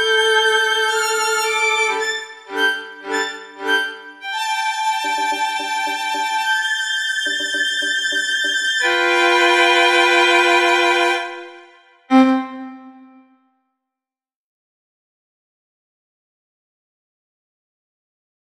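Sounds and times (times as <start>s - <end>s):
violin solo: 0.0s - 13.4s.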